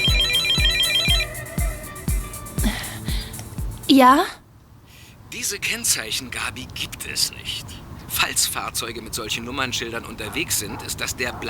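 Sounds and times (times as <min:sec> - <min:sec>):
mobile phone ringtone with warbling trill over thumping beat: 0:00.0 - 0:02.3
speech: 0:03.9 - 0:04.4, 0:05.3 - 0:11.4.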